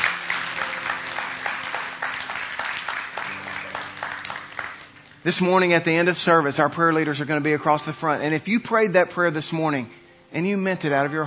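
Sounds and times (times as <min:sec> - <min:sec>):
audience clapping hands: 0:00.0 - 0:05.9
speech: 0:05.2 - 0:11.2.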